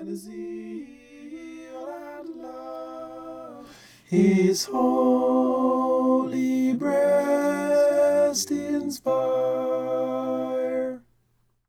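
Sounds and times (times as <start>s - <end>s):
tenor singing a hymn: 0.0s - 11.1s.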